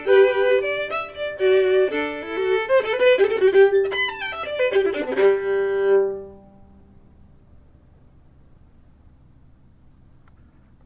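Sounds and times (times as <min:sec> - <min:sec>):
fiddle chords playing reels: 0:00.0 - 0:06.5.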